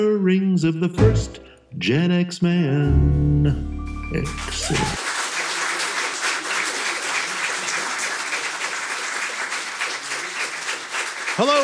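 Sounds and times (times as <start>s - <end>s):
speech: 0.0s - 5.0s, 11.4s - 11.6s
canned applause from a fake studio audience: 4.2s - 11.6s.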